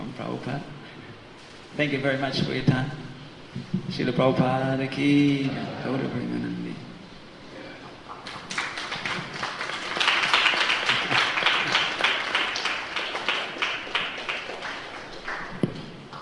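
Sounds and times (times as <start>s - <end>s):
speech: 0.2s - 1.0s, 1.7s - 6.8s
audience clapping: 8.0s - 16.2s.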